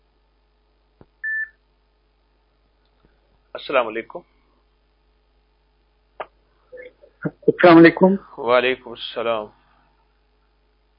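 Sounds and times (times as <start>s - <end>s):
faint hum: 0.0s - 10.9s
telephone line beep: 1.2s - 1.5s
speech: 3.6s - 4.3s, 7.6s - 9.6s.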